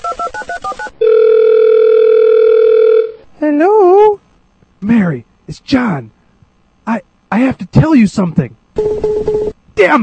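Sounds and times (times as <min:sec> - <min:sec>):
loud steady unbroken telephone tone: 0:01.0 - 0:03.2, 0:08.8 - 0:09.6
speech: 0:05.0 - 0:06.2, 0:06.9 - 0:08.9, 0:09.8 - 0:10.0.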